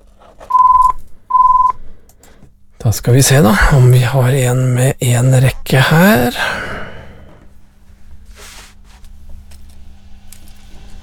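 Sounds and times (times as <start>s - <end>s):
telephone ringing: 0.5s - 1.8s
speech: 2.8s - 6.7s.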